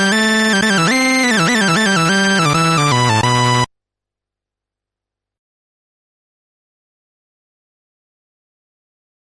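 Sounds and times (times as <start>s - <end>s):
Moog Little Phatty Stage II synthesizer oscillators: 0.0s - 3.7s.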